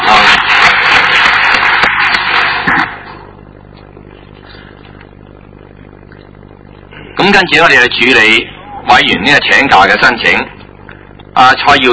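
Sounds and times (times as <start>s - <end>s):
audience applause: 0.0s - 3.2s
speech: 7.4s - 10.5s, 11.4s - 11.9s.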